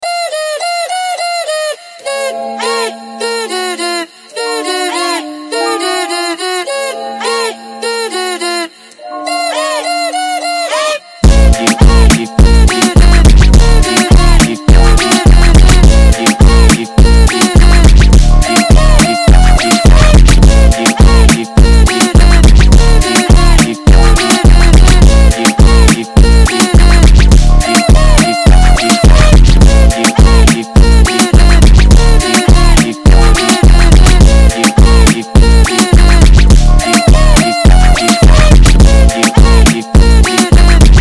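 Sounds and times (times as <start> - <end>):
sped up funk music: 11.2 - 40.9.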